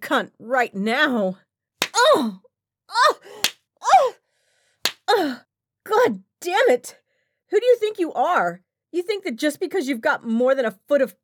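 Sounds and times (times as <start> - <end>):
speech: 0.1 - 1.4, 2.1 - 3.3, 5.1 - 11.2
sharp loud slaps: 1.8 - 2.2, 3.4 - 3.6, 4.8 - 5.2.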